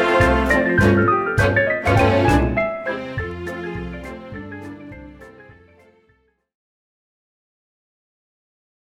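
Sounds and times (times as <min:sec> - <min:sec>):
instrumental music excerpt: 0:00.0 - 0:06.3.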